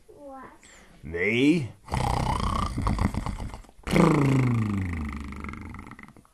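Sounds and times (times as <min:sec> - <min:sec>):
speech: 0:00.4 - 0:02.2, 0:04.2 - 0:04.5
person imitating a dog snoring: 0:01.9 - 0:06.2.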